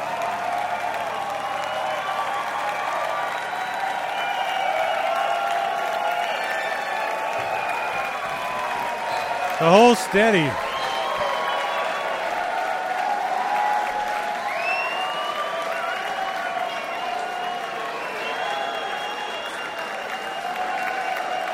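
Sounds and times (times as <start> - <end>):
concert crowd cheers and whistles: 0.0 - 21.5
large concert crowd applause: 0.0 - 21.5
speech: 9.6 - 10.7.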